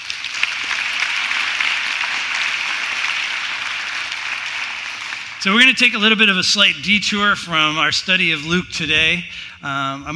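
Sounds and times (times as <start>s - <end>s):
round of applause: 0.0s - 5.8s
speech: 5.4s - 10.1s.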